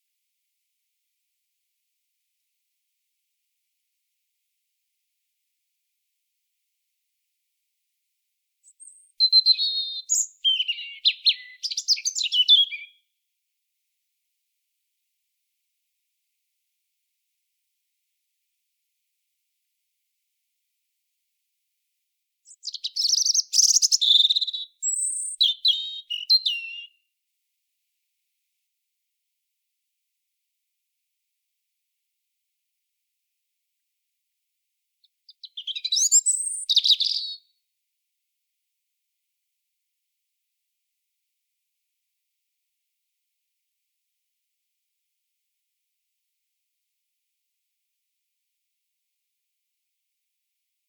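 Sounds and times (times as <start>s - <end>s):
European robin singing: 8.6s - 13.0s, 22.5s - 27.0s, 35.3s - 37.5s.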